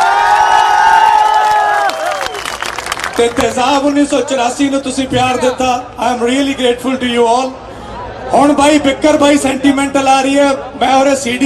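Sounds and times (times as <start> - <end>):
crowd cheering at a live stage show: 0.0 - 3.6
speech: 3.2 - 7.6, 8.3 - 11.4.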